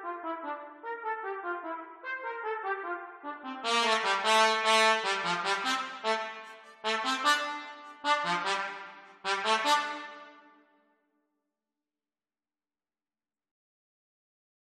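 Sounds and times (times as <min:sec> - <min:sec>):
trumpet duet: 0:00.0 - 0:10.6.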